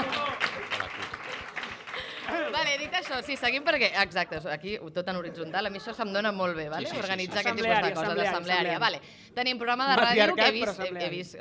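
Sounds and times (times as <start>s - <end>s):
applause: 0.0s - 3.8s
speech: 2.6s - 11.3s.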